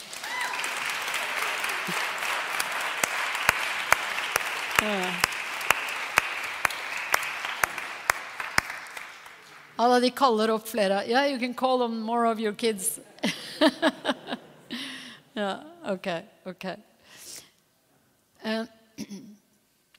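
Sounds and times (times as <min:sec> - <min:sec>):
audience applause: 0:00.0 - 0:09.8
speech: 0:09.8 - 0:14.0, 0:15.4 - 0:16.9, 0:18.4 - 0:19.2
laughter: 0:13.2 - 0:14.9.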